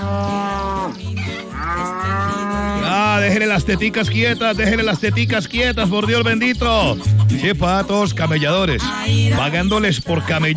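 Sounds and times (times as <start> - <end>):
cow mooing: 0.0 - 4.1
speech: 3.6 - 10.5.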